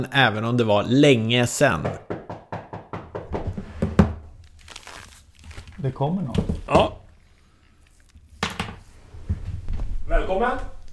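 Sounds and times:
speech: 0:00.0 - 0:02.1, 0:05.8 - 0:07.0, 0:10.4 - 0:10.8
knocking on a door: 0:01.8 - 0:04.2.

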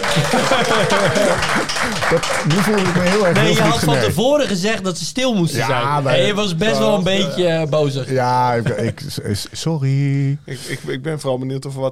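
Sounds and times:
audience applause: 0:00.0 - 0:04.1
laughter: 0:00.0 - 0:04.2, 0:06.3 - 0:09.6
speech: 0:00.2 - 0:11.9.

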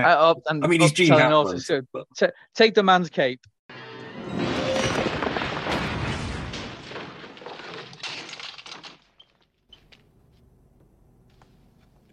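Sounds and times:
speech: 0:00.0 - 0:03.5
door being smashed off: 0:04.1 - 0:09.4
splintering and clattering debris: 0:04.1 - 0:09.6.

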